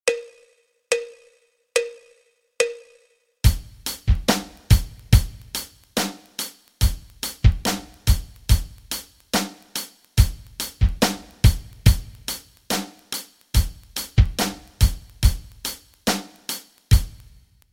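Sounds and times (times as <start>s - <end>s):
rock rhythms: 3.4s - 17.6s.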